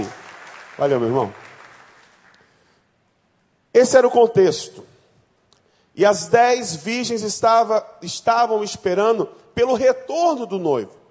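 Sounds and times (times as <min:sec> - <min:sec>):
audience applause: 0:00.0 - 0:02.4
speech: 0:00.8 - 0:01.4, 0:03.8 - 0:04.9, 0:06.0 - 0:11.0.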